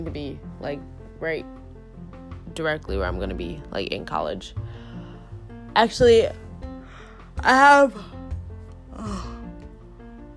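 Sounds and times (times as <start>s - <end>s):
speech: 0.0s - 4.6s, 5.8s - 6.4s, 7.4s - 8.2s, 9.0s - 9.4s
tired person yawning: 8.9s - 9.5s.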